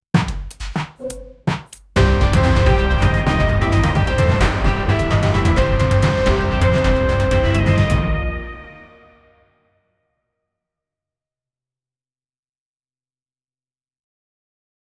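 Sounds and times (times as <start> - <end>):
police crime intro music: 2.0 - 9.4.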